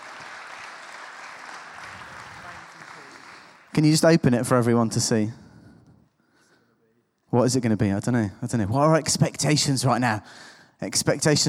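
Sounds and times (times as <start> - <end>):
audience applause: 0.0 - 4.0
speech: 3.7 - 5.4, 7.4 - 11.4.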